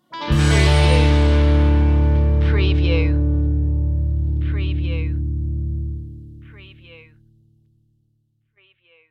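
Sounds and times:
western music stinger: 0.2 - 6.2.

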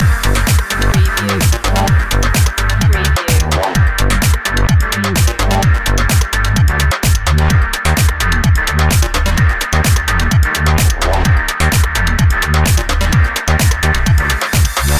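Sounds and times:
beat loop: 0.0 - 14.9.

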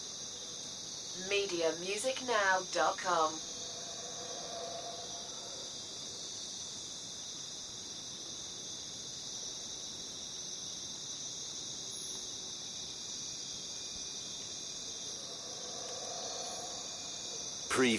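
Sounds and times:
crickets trilling: 0.0 - 17.9
speech: 1.2 - 3.5, 17.8 - 17.9.

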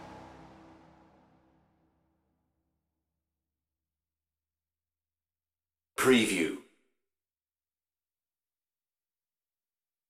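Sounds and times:
apocalypse hybrid music: 0.0 - 2.2.

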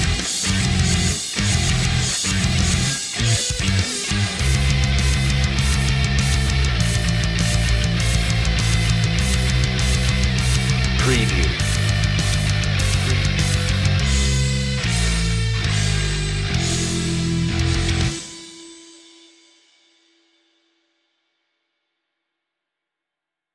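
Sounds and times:
bass heavy jams: 0.0 - 18.3.

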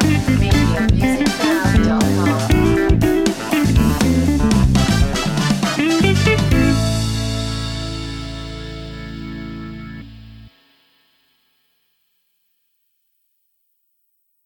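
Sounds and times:
funk soul music: 0.0 - 10.5.

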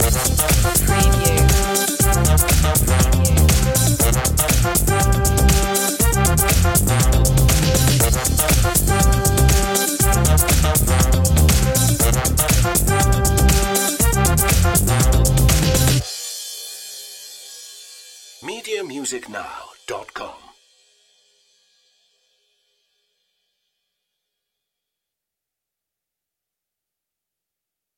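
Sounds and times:
funk music loop: 0.0 - 16.0, 18.4 - 20.5.

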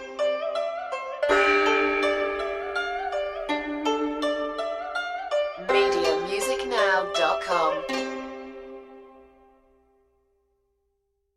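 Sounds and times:
Chinese waltz music: 1.3 - 5.0, 5.6 - 8.9.

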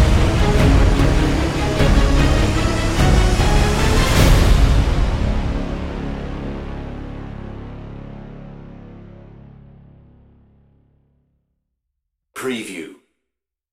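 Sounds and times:
battlefield music without choir: 0.0 - 8.4.

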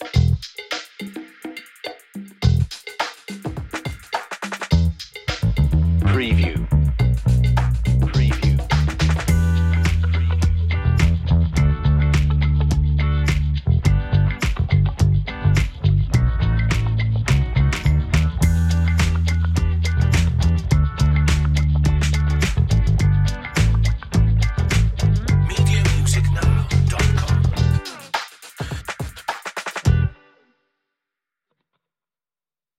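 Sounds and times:
bouncy bass: 0.0 - 0.4, 2.4 - 2.7, 4.7 - 27.9, 29.9 - 30.1
playful and funny bluesy track: 0.0 - 0.5, 4.6 - 28.1, 29.7 - 30.4.

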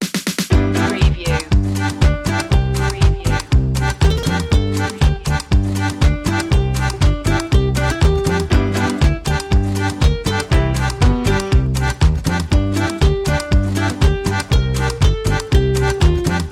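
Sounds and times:
instrumental music loop intro: 0.0 - 16.5.

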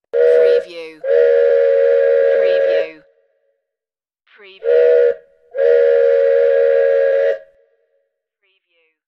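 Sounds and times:
train whistle: 0.1 - 3.1, 4.6 - 7.8.

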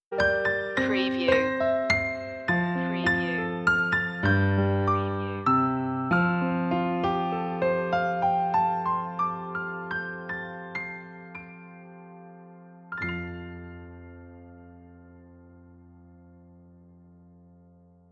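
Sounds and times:
piano playing a Christmas carol: 0.1 - 18.1.

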